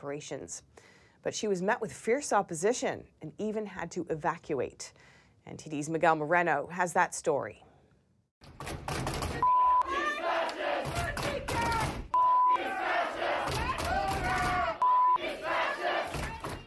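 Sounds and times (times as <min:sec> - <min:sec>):
speech: 0:00.0 - 0:07.7
censor beeps: 0:09.4 - 0:09.9, 0:12.2 - 0:12.6, 0:14.8 - 0:15.2
audience yelling and chanting at an anti child transition surgery event at the University of North Texas: 0:09.4 - 0:16.6.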